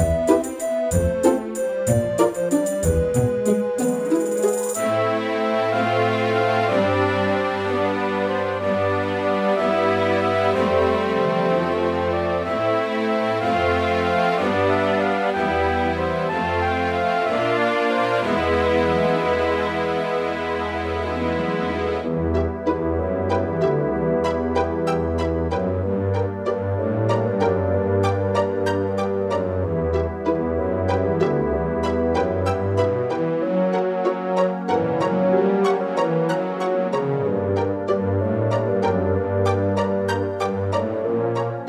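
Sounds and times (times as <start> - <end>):
Yamaha MU2000EX synthesizer music in XG mode: 0.0 - 41.6.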